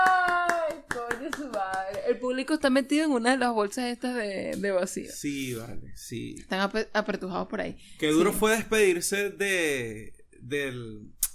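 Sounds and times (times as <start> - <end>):
hand clapping: 0.0 - 2.2
speech: 2.1 - 11.2.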